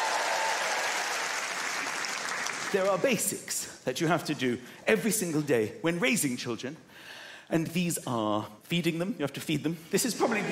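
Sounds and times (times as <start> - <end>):
audience applause: 0.0 - 3.1
speech: 2.7 - 10.5.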